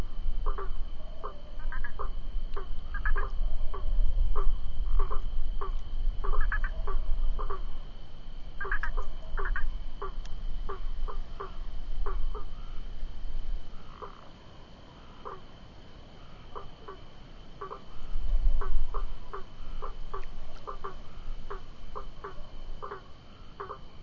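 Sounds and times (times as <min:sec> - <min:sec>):
cururu toad Rhinella icterica calling: 0:00.0 - 0:07.8, 0:08.6 - 0:12.9, 0:13.7 - 0:14.3, 0:15.0 - 0:15.5, 0:16.2 - 0:24.0.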